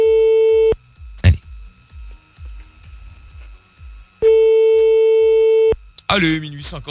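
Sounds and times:
telephone tone while dialling a radio listener: 0.0 - 1.4, 4.2 - 5.8
speech: 6.2 - 6.8.

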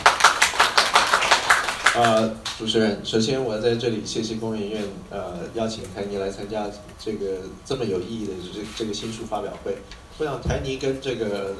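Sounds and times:
applause welcoming a speaker at a book launch press conference: 0.0 - 2.6
speech: 2.0 - 11.5.

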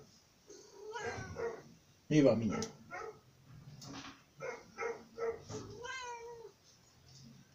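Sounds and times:
cat meowing: 0.5 - 1.7, 5.5 - 6.6
speech: 2.1 - 2.8.

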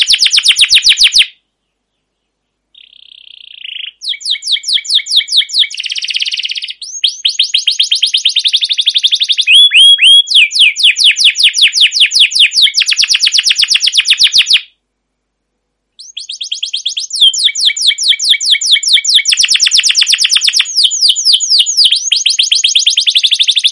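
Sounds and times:
canary singing long rolling trills: 0.0 - 1.4, 2.7 - 14.7, 16.0 - 23.6.

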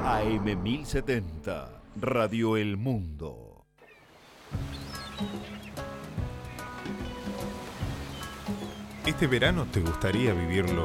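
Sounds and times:
speech: 0.1 - 3.5, 5.2 - 5.6, 9.0 - 10.8
ocean waves washing onto a shore: 4.0 - 10.3.

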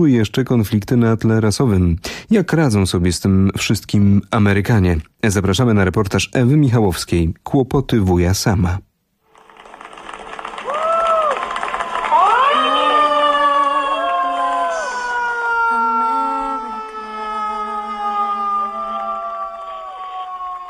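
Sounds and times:
speech: 0.0 - 8.9
people shouting from balconies: 10.6 - 20.6.

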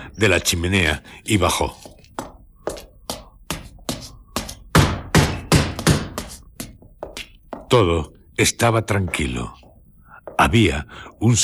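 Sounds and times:
speech: 0.2 - 1.9, 7.7 - 9.6, 10.4 - 11.4
heavy resonant blows pounding on wood: 2.2 - 7.8.

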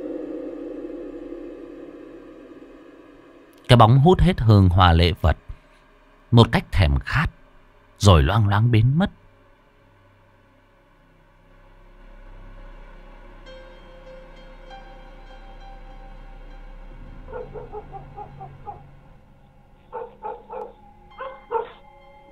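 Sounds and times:
speech: 3.7 - 5.4, 6.3 - 7.4, 8.0 - 9.2
dog barking at night: 17.3 - 18.9, 19.8 - 21.8.

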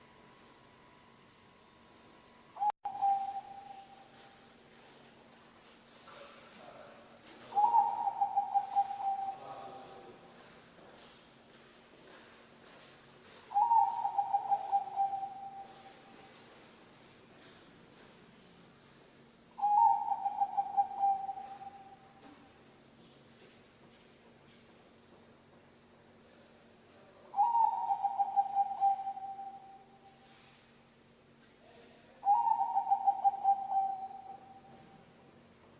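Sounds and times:
zebra dove cooing: 2.6 - 4.4, 7.4 - 10.3, 13.5 - 16.4, 19.6 - 22.3, 27.3 - 30.0, 32.2 - 35.0.

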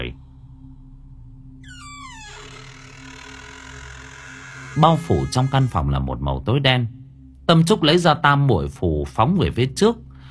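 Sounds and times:
wooden door of a room creaking open: 1.6 - 6.0
speech: 4.8 - 10.0.

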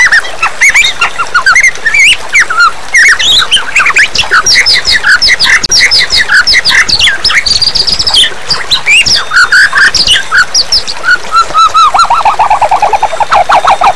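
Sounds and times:
white-rumped shama singing: 0.0 - 13.9.

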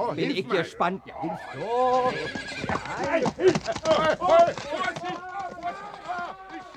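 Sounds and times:
speech: 0.1 - 5.9
horse whinnying as someone tries to ride it: 1.2 - 3.2
horse hooves clip-clopping: 1.3 - 6.7.

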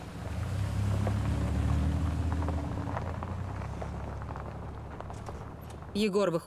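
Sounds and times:
car driving away: 0.0 - 6.0.

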